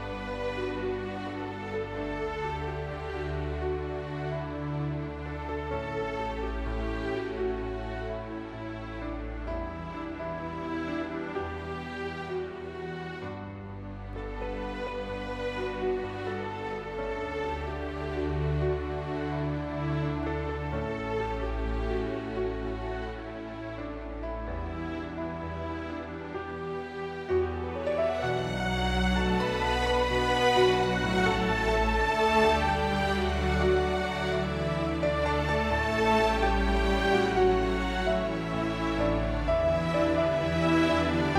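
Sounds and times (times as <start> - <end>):
piano: 0.0 - 41.3
string orchestra: 0.0 - 41.3.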